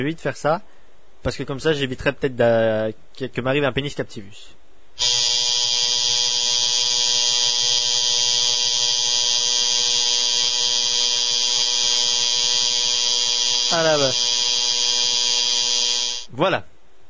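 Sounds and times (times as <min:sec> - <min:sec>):
speech: 0:00.0 - 0:05.3, 0:13.8 - 0:14.4, 0:16.4 - 0:16.7
portable electric razor buzzing: 0:05.0 - 0:16.3.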